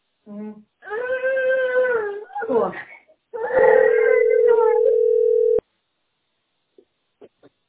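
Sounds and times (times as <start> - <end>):
speech: 0.3 - 0.7
child wailing: 0.8 - 2.5, 3.4 - 4.9
ringback tone of an outgoing phone call: 3.6 - 5.6.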